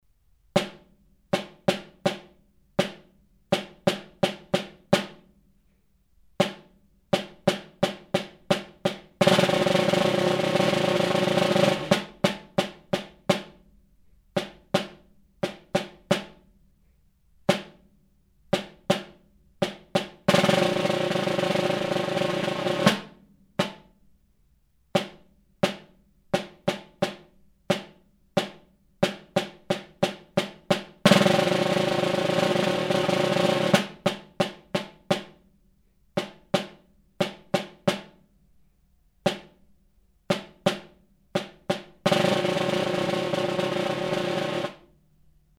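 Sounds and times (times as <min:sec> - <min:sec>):
snare drum: 0:00.6 - 0:05.3, 0:06.4 - 0:13.7, 0:14.4 - 0:16.5, 0:17.5 - 0:17.9, 0:18.6 - 0:24.0, 0:25.0 - 0:35.5, 0:36.2 - 0:38.2, 0:39.3 - 0:39.6, 0:40.3 - 0:44.9.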